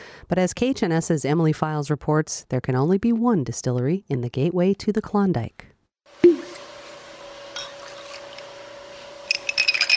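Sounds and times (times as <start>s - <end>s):
speech: 0.3s - 5.7s
ice clinking in a glass as a cocktail is stirred at a distillery: 9.3s - 9.9s.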